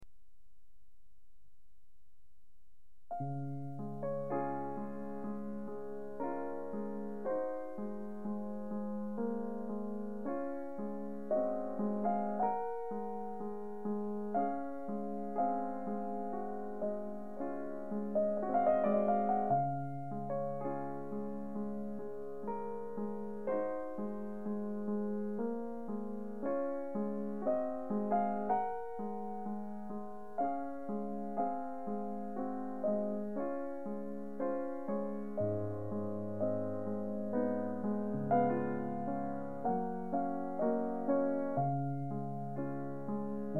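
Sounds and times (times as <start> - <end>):
piano prelude: 3.1 - 43.5.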